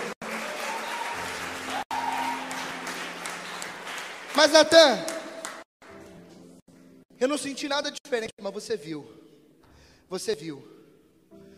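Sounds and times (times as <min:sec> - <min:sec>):
audience applause: 0:00.0 - 0:05.7
speech: 0:04.4 - 0:05.1, 0:07.2 - 0:09.2, 0:10.1 - 0:10.8.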